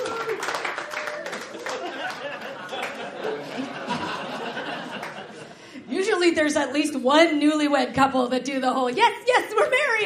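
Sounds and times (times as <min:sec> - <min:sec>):
crowd clapping: 0:00.0 - 0:05.5
audience chuckles: 0:01.6 - 0:05.6
speech: 0:06.3 - 0:10.0.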